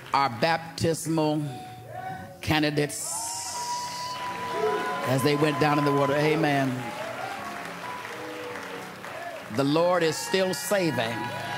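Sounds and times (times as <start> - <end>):
speech: 0.1 - 1.7, 2.4 - 3.2, 4.6 - 7.0, 9.5 - 11.5
audience applauding with hand claps: 3.5 - 11.5.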